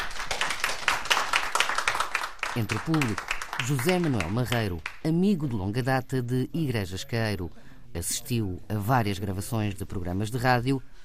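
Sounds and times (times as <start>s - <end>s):
audience applause: 0.0s - 4.7s
speech: 2.6s - 11.0s.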